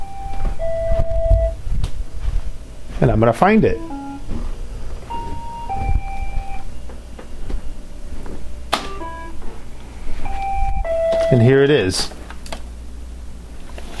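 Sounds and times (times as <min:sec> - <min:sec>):
robot vacuum playing a locator melody of electronic tones: 0:00.0 - 0:01.6, 0:03.7 - 0:04.2, 0:05.1 - 0:06.7, 0:08.8 - 0:09.5, 0:10.2 - 0:11.4
low rumbling hum: 0:00.0 - 0:13.8
speech: 0:03.0 - 0:04.5, 0:11.3 - 0:12.2.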